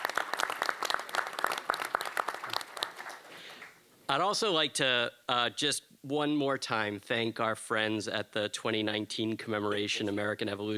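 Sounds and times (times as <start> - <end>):
audience applause: 0.0 - 3.8
speech: 4.1 - 10.7.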